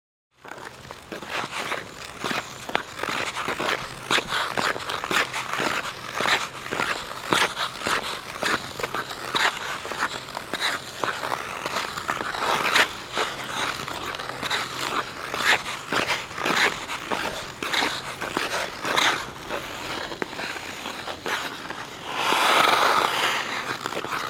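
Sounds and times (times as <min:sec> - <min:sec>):
hockey player skating alone and stopping: 0:00.4 - 0:24.2.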